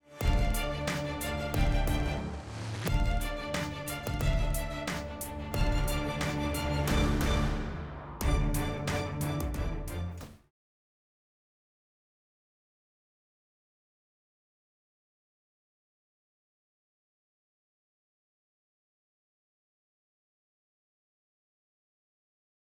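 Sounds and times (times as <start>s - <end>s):
music: 0.0s - 10.5s.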